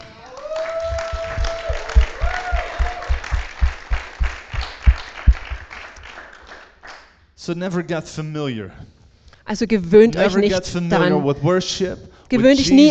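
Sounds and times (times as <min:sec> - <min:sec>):
church congregation clapping: 0:00.0 - 0:07.2
speech: 0:07.4 - 0:12.8.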